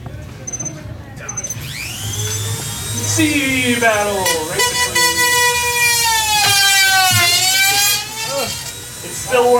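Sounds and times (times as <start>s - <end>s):
Game Boy electronic beeps: 0.4s - 4.2s
Dremel rotary tool drilling into Game Boy: 1.4s - 9.5s
speech: 3.0s - 4.7s, 9.3s - 9.5s.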